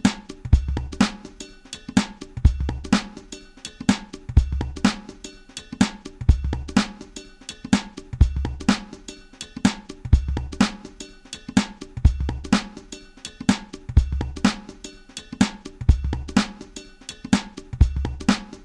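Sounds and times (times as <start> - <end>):
drum loop at 125 BPM: 0.0 - 18.6.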